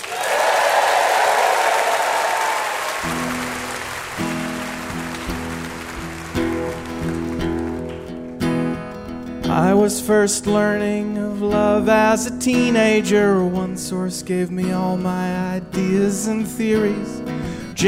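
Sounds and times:
audience applause for a guest at a live quiz show taping: 0.0 - 8.6
speech: 9.9 - 17.8.

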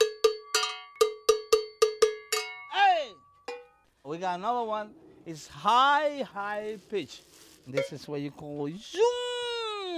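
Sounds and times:
low-pitched welded metal bell ringing: 0.0 - 3.8
speech: 4.1 - 9.3.

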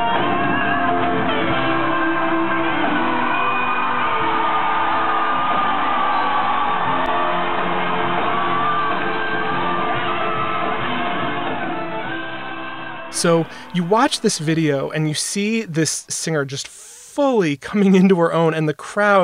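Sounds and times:
concert crowd screaming and cheering: 0.2 - 14.9
speech: 13.2 - 19.2.

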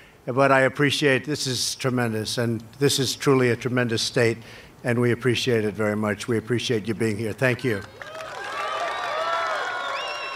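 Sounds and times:
speech: 0.2 - 8.2
crowd applause at a speech: 7.8 - 10.3.

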